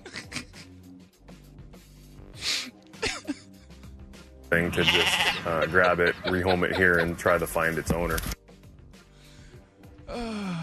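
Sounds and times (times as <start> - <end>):
laughter: 0.0 - 0.8, 3.0 - 3.5, 4.5 - 8.1
speech: 4.5 - 8.4
goat bleating: 4.6 - 6.3.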